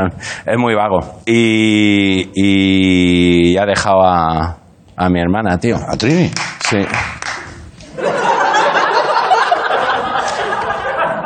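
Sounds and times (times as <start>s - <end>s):
speech: 0.0s - 7.2s
studio audience laughter: 7.8s - 11.2s.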